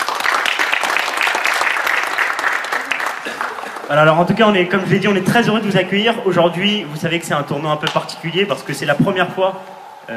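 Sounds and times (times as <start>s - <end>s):
audience applause: 0.0s - 4.4s
speech: 3.9s - 10.1s.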